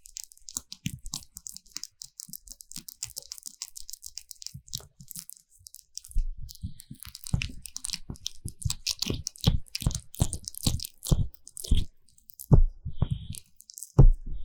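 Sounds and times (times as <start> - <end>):
Vaseline ear massage squishing and crackling: 0.0 - 14.4.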